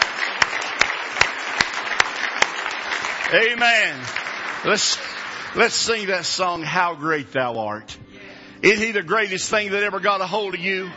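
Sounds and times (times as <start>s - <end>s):
audience clapping hands in praise: 0.0s - 7.0s
speech: 3.3s - 10.9s.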